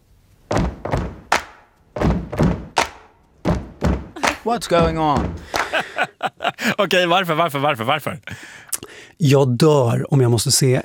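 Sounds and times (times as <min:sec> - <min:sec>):
heavy foot stamps to a beat: 0:00.4 - 0:06.1
sharp hand claps to a beat: 0:01.0 - 0:01.8, 0:02.7 - 0:06.1
laughter: 0:04.2 - 0:07.0
speech: 0:04.4 - 0:10.8.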